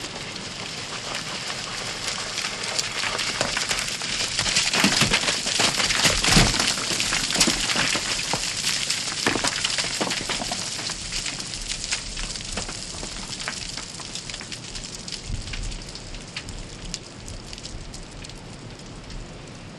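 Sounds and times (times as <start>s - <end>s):
rockfall on the glacier: 0.0s - 15.7s.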